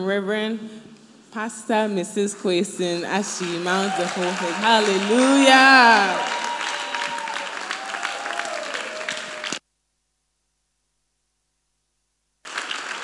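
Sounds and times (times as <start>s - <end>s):
speech: 0.0s - 6.4s
audience clapping: 3.0s - 9.6s, 12.4s - 13.0s.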